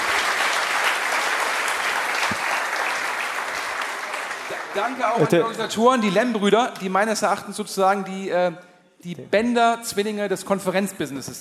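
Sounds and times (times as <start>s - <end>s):
audience applause: 0.0s - 5.5s
speech: 4.8s - 11.4s.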